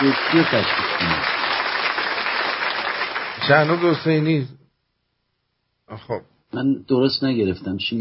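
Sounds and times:
speech: 0.0s - 1.3s, 3.5s - 4.6s, 5.9s - 7.9s
audience applause: 0.0s - 4.3s.

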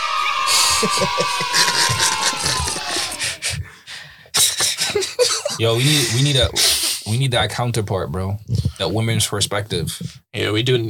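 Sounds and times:
crowd cheering and whooping: 0.0s - 3.4s
laughter: 0.0s - 3.8s, 4.4s - 6.8s
speech: 0.8s - 2.4s, 5.6s - 10.8s.

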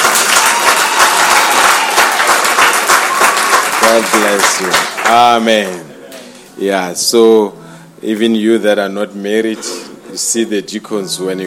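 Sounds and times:
audience applause: 0.0s - 5.8s
speech: 3.9s - 5.9s, 6.6s - 11.4s.

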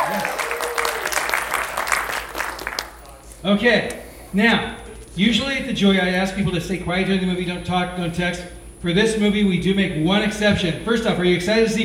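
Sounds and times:
audience applause: 0.0s - 3.3s
speech: 3.4s - 11.8s.

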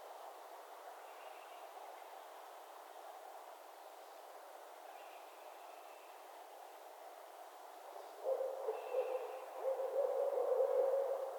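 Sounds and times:
barred owls calling in Northern Michigan: 8.3s - 11.3s.

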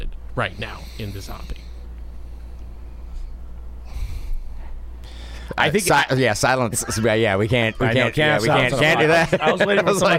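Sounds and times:
speech: 0.4s - 1.7s, 5.6s - 10.1s
deep breath taken by someone pausing to think: 0.5s - 5.6s
laughter: 7.8s - 10.1s.

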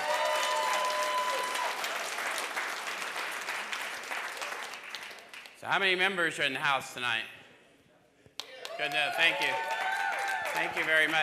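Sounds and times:
audience applause: 0.0s - 5.6s, 8.6s - 11.2s
speech: 5.6s - 7.4s, 8.8s - 9.7s, 10.6s - 11.2s.

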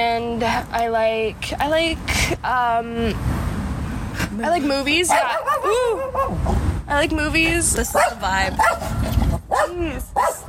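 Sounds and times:
speech: 0.0s - 3.4s, 4.2s - 10.4s
anxious dog barking: 5.1s - 6.6s, 7.9s - 10.4s.

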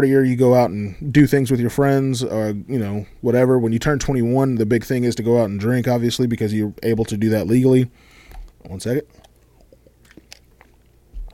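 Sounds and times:
speech: 0.0s - 9.2s
person sipping water: 8.0s - 11.3s.

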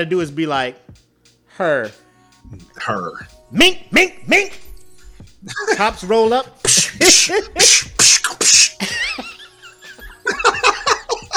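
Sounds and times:
speech: 0.0s - 1.0s, 1.6s - 4.7s, 5.4s - 9.3s, 10.3s - 11.3s
laughter: 5.5s - 5.8s, 8.8s - 11.3s
voice imitating old 70s kung fu noises: 6.7s - 8.8s.

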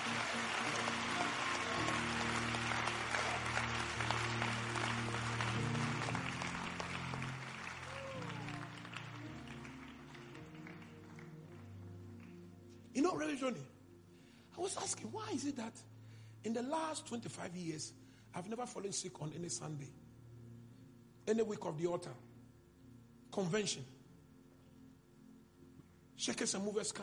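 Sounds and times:
audience clapping: 0.0s - 12.5s
speech: 13.1s - 13.7s, 14.6s - 20.0s, 21.3s - 22.2s, 23.4s - 24.0s, 26.2s - 27.0s.

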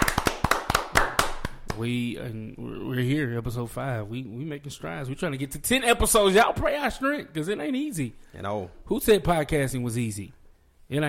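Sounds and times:
people clapping: 0.0s - 2.0s
speech: 1.8s - 11.0s.

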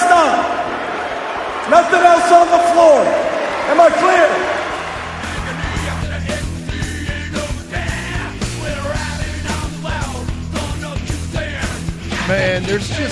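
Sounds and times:
large arena crowd booing a coach: 0.0s - 7.1s, 11.7s - 13.1s
speech: 1.7s - 4.5s, 12.4s - 13.1s.

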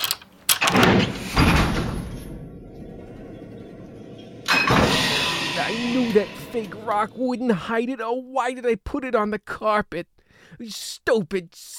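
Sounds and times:
key turning in heavy lock: 0.0s - 0.9s
low steady rumbling hum: 1.4s - 7.2s
speech: 5.7s - 11.7s.

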